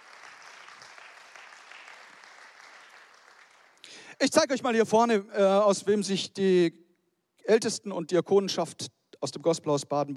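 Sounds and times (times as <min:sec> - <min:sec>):
applause: 0:00.0 - 0:04.2
speech: 0:03.9 - 0:06.8, 0:07.5 - 0:10.1.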